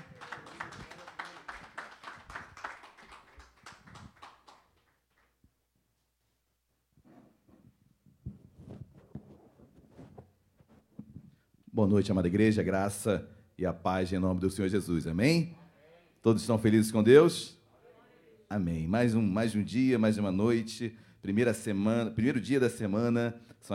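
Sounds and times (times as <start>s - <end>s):
crowd noise: 0.0s - 4.1s
audience applause: 0.0s - 5.3s
speech: 11.8s - 15.6s, 16.2s - 17.6s, 18.5s - 23.7s.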